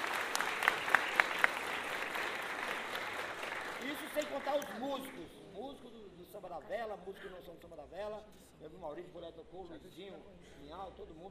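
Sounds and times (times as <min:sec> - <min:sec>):
audience applause: 0:00.0 - 0:05.2
speech: 0:04.4 - 0:11.2.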